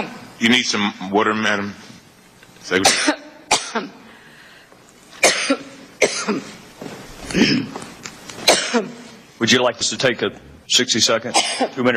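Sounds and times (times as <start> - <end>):
speech: 0.0 - 1.8, 2.7 - 4.0, 6.3 - 6.6, 7.3 - 7.8, 8.7 - 11.9
coughing and throat clearing: 2.8 - 4.0, 5.2 - 6.6, 7.2 - 7.8, 8.4 - 9.1, 11.3 - 11.8.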